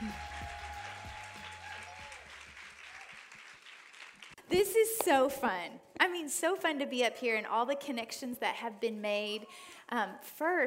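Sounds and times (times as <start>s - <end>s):
applause at a women's church gathering welcoming a guest speaker: 0.0s - 4.4s
speech: 4.5s - 10.6s.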